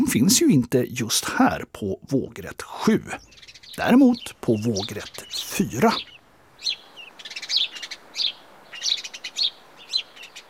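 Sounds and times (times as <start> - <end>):
speech: 0.0 - 6.8
house sparrow Passer domesticus chirping: 2.1 - 10.4.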